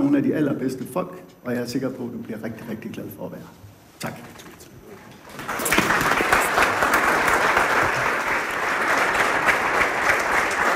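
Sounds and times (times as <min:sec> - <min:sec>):
speech: 0:00.2 - 0:04.5
audience applause: 0:05.4 - 0:10.7.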